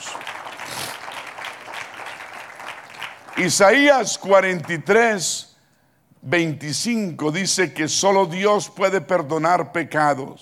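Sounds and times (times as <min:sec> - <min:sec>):
audience applause: 0:00.0 - 0:03.8
speech: 0:03.4 - 0:05.5, 0:06.2 - 0:10.3.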